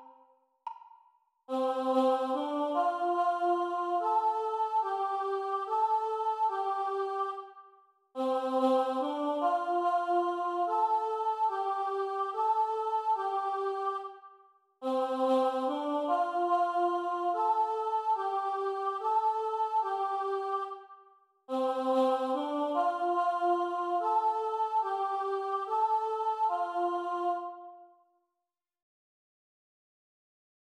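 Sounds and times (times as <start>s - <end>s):
solo voice chanting: 1.5s - 7.5s, 8.2s - 14.2s, 14.8s - 20.8s, 21.5s - 28.0s.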